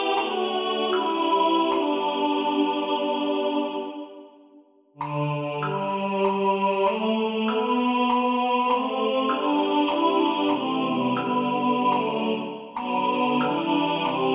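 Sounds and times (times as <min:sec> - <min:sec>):
tenor singing in the foreground: 0:00.0 - 0:04.2, 0:05.0 - 0:14.3
metronome ticking: 0:05.0 - 0:12.1.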